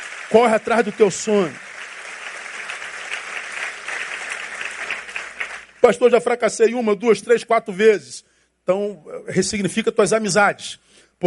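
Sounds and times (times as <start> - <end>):
audience applause: 0.0 - 5.8
speech: 0.3 - 1.7, 5.8 - 11.2.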